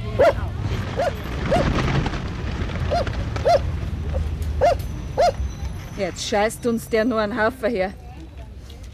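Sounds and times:
dog barking in sharp yaps: 0:00.2 - 0:01.7, 0:04.6 - 0:05.4
steady rumbling wash of noise: 0:00.5 - 0:05.2
speech: 0:06.0 - 0:08.0.

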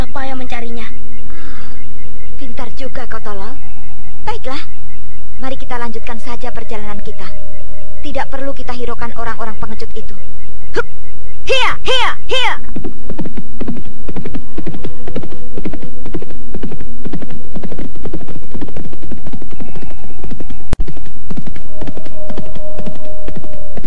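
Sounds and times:
low rumbling hum: 0:00.0 - 0:23.8
speech: 0:02.8 - 0:04.8, 0:05.4 - 0:15.8
horses galloping: 0:11.5 - 0:23.8.

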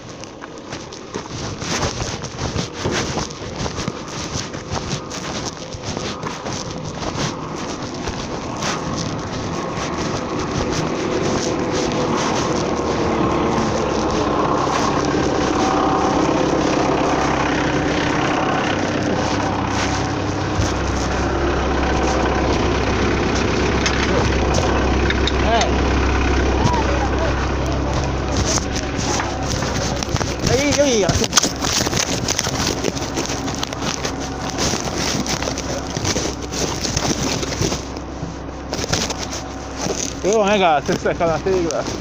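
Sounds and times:
tractor engine idling: 0:00.0 - 0:41.9
speech: 0:40.6 - 0:41.9.

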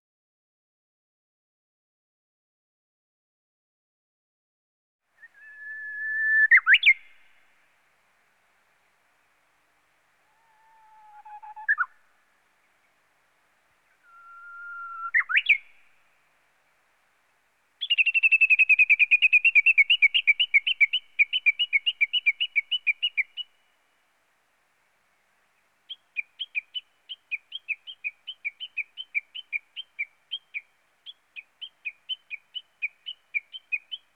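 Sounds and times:
small bird whistled song: 0:05.2 - 0:07.4, 0:10.3 - 0:13.0, 0:13.9 - 0:16.3, 0:17.8 - 0:24.0, 0:25.9 - 0:34.1.

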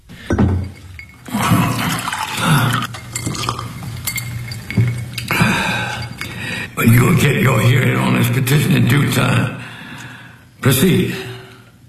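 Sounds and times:
water being poured for a drink: 0:00.2 - 0:08.0
speech: 0:07.2 - 0:09.7, 0:10.6 - 0:11.3.

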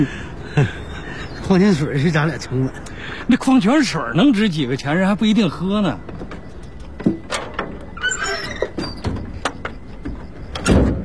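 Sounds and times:
speech: 0:00.0 - 0:00.8, 0:01.5 - 0:06.1
door sliding along its track and shutting: 0:07.0 - 0:09.6.

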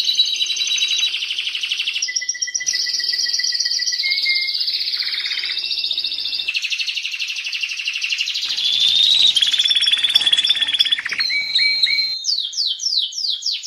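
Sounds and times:
canary singing actively, a model song for training other birds: 0:00.0 - 0:07.2, 0:08.3 - 0:13.4.

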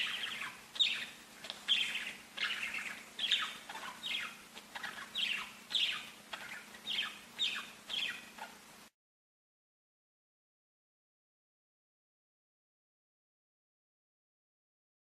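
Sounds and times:
budgerigar chirping: 0:00.0 - 0:08.7.

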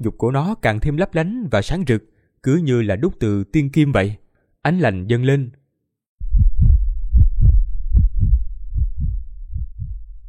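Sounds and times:
speech: 0:00.0 - 0:05.6
loud pounding heartbeat: 0:06.2 - 0:10.2.

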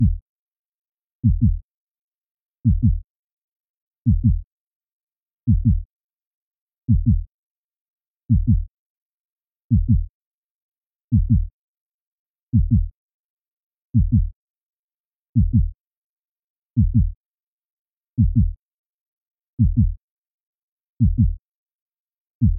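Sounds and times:
heartbeat: 0:00.0 - 0:00.2, 0:01.2 - 0:01.6, 0:02.7 - 0:03.0, 0:04.1 - 0:04.4, 0:05.5 - 0:05.8, 0:06.9 - 0:07.3, 0:08.3 - 0:08.7, 0:09.7 - 0:10.1, 0:11.1 - 0:11.5, 0:12.6 - 0:12.9, 0:14.0 - 0:14.3, 0:15.4 - 0:15.7, 0:16.8 - 0:17.2, 0:18.2 - 0:18.6, 0:19.6 - 0:20.0, 0:21.0 - 0:21.4.

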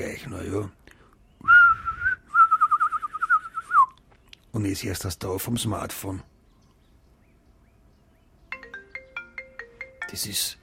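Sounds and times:
speech: 0:00.0 - 0:00.8, 0:04.5 - 0:06.3, 0:10.1 - 0:10.6
person whistling a bird call imitation: 0:01.4 - 0:04.0.

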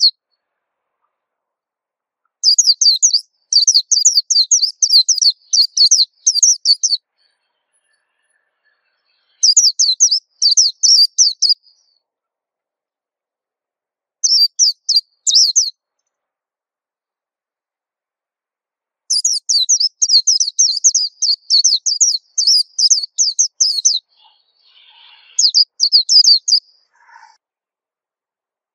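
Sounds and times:
white-eye song: 0:02.4 - 0:12.0, 0:14.2 - 0:15.7, 0:19.1 - 0:27.4.

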